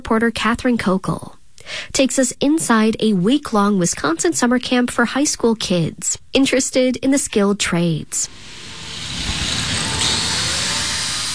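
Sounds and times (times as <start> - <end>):
speech: 0.1 - 8.6
grinder smoothing the edges of a weld at a skilled-trades summer camp: 8.3 - 11.3.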